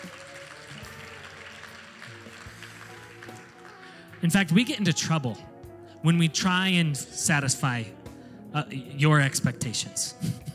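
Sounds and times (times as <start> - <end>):
crowd clapping: 0.0 - 5.3
speech: 4.2 - 10.5.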